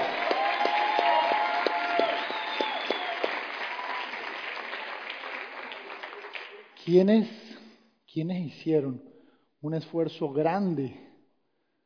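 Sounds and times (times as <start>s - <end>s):
audience applause: 0.0s - 6.8s
speech: 6.9s - 7.4s, 8.2s - 11.0s.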